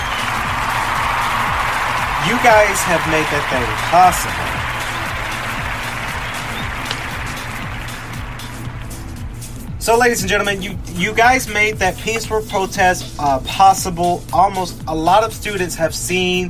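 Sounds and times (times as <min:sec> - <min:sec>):
audience applause: 0:00.0 - 0:09.1
speech: 0:02.2 - 0:04.6, 0:09.8 - 0:16.4.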